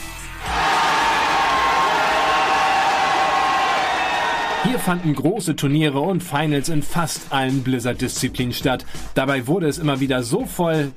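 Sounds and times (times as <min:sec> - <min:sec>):
crowd din in esports arena: 0:00.5 - 0:05.0
speech: 0:04.6 - 0:10.9.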